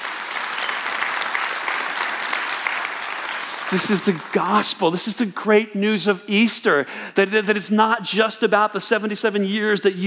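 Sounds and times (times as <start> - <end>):
audience clapping: 0.0 - 5.2
speech: 3.7 - 10.0.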